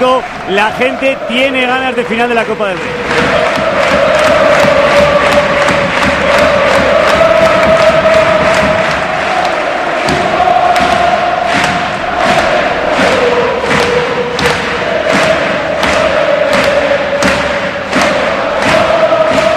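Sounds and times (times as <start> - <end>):
football stadium crowd roaring and chanting: 0.0 - 19.5
rhythmic unison claps or thumps: 0.0 - 19.5
speech: 0.2 - 4.0.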